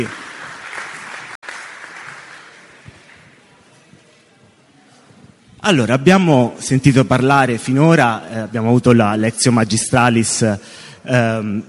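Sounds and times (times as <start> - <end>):
speech: 0.0 - 0.2, 5.7 - 11.6
audience applause: 0.0 - 3.4.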